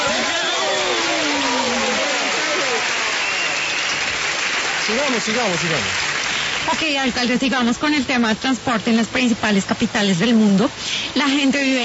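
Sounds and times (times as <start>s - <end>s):
voices calling out and talking: 0.0s - 5.6s
audience applause: 0.0s - 7.1s
speech: 4.9s - 6.0s, 6.6s - 11.8s.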